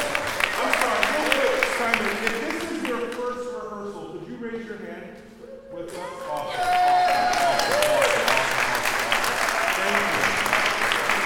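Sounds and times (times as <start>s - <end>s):
group applause: 0.0s - 3.3s, 5.9s - 11.2s
speech: 2.2s - 6.4s.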